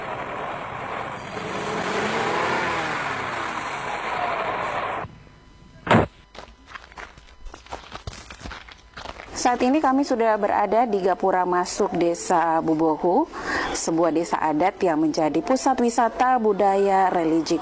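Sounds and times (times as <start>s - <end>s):
car driving on a narrow road: 0.0s - 5.1s
speech: 9.4s - 17.5s.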